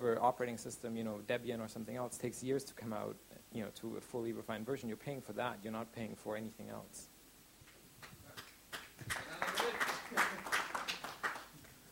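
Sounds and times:
speech: 0.0 - 7.1
audience applause: 8.7 - 11.8.

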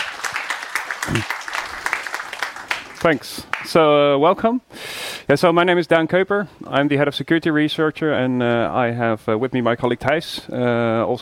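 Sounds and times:
audience applause at a security conference talk about hacking a smart hub: 0.0 - 3.6
speech: 1.1 - 1.4, 3.0 - 11.1.

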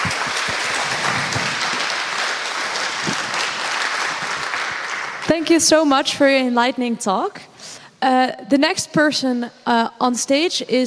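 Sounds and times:
audience applause: 0.0 - 5.5
speech: 5.3 - 10.8.

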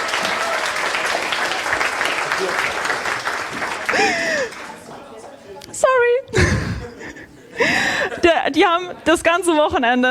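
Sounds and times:
audience applause: 0.0 - 5.0
laughter: 3.5 - 5.1, 6.4 - 8.5
speech: 8.5 - 10.0.

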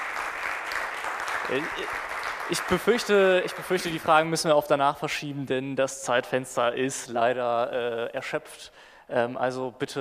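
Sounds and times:
audience applause at the close of a conference talk: 0.0 - 4.0
speech: 1.5 - 10.0.

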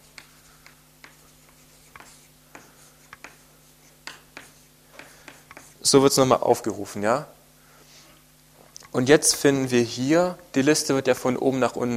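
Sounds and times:
chalk or marker writing on a board during a lecture: 0.0 - 5.9
low steady hum: 0.0 - 11.9
speech: 5.9 - 7.4, 9.0 - 11.9.

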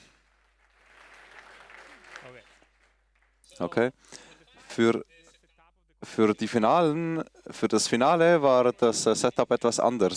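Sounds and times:
audience applause in a hall: 0.0 - 3.5
speech: 3.6 - 5.2, 6.0 - 10.1.

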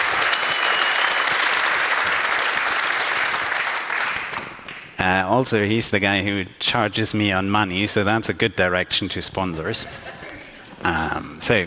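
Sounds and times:
audience applause: 0.0 - 5.0
speech: 5.3 - 10.2, 10.8 - 11.6.

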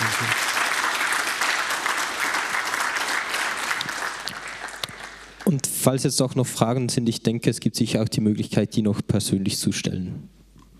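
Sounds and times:
audience applause: 0.0 - 5.5
speech: 5.5 - 10.4.

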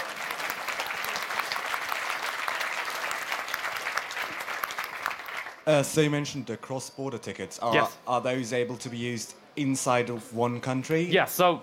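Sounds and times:
audience applause: 0.0 - 5.6
speech: 5.7 - 11.6.

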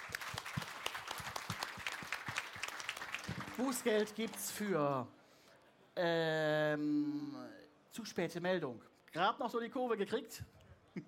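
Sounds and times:
audience applause: 0.0 - 4.5
speech: 3.6 - 5.2, 6.0 - 10.6.

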